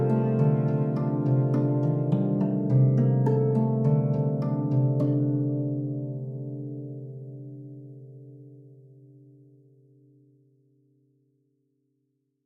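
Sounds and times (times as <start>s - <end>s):
harp: 0.0s - 9.7s.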